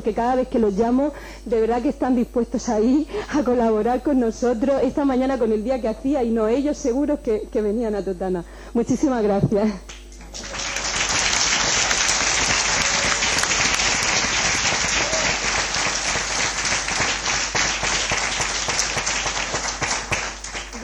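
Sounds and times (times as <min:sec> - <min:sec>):
speech: 0:00.0 - 0:10.5
sustained applause from a large audience: 0:10.3 - 0:20.8.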